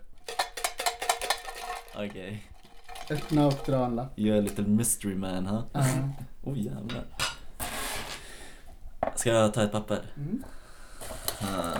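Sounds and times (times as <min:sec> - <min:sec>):
tin can being shaken: 0:00.0 - 0:07.5, 0:11.2 - 0:11.7
speech: 0:02.0 - 0:02.5, 0:03.1 - 0:07.2, 0:09.2 - 0:10.6, 0:11.4 - 0:11.7
laughter: 0:05.8 - 0:06.2.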